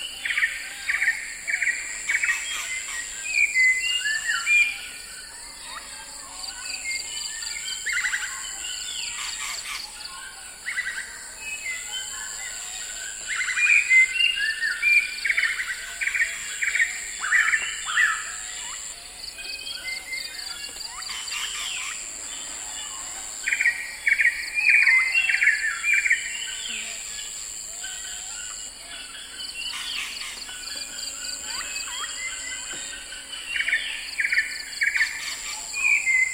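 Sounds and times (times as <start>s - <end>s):
frogs in swamp: 0.0s - 36.3s
insects in swamp: 0.0s - 36.3s.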